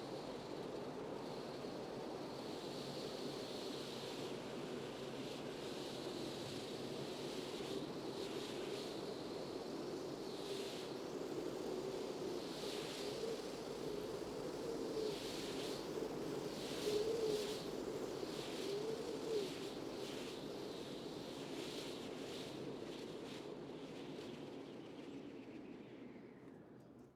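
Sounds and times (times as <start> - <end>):
wind: 0.0 - 27.1.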